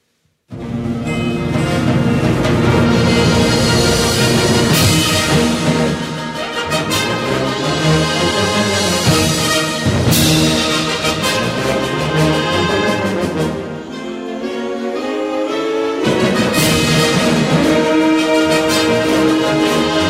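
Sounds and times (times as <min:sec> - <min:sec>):
trumpet: 0:00.5 - 0:20.0.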